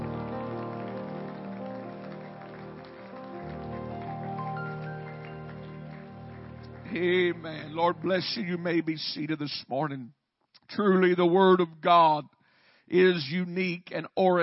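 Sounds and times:
audience clapping hands: 0.0s - 9.3s
speech: 6.9s - 12.3s, 12.9s - 14.4s.

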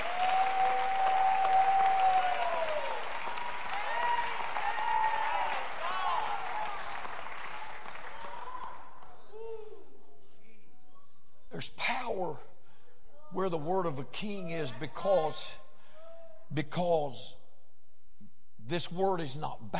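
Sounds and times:
audience clapping: 0.0s - 9.2s
speech: 11.6s - 12.5s, 13.3s - 15.6s, 16.5s - 17.4s, 18.7s - 19.7s.

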